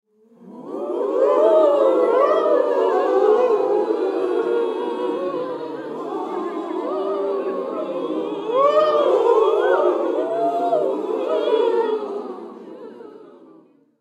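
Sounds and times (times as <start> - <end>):
human crowd in a studio: 0.1 - 13.9.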